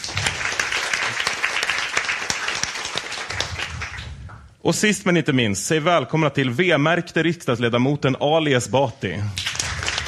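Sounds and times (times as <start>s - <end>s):
audience applause: 0.0s - 4.4s, 9.4s - 10.0s
speech: 4.6s - 9.4s.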